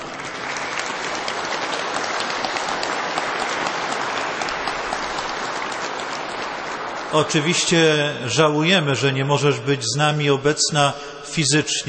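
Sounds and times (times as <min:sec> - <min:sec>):
audience applause: 0:00.0 - 0:08.7
speech: 0:07.1 - 0:11.8.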